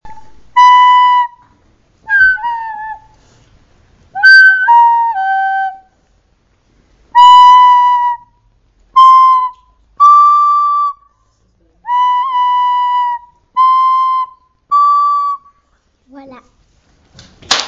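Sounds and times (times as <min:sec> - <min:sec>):
flute: 0:00.0 - 0:03.4, 0:04.1 - 0:06.0, 0:07.2 - 0:15.6.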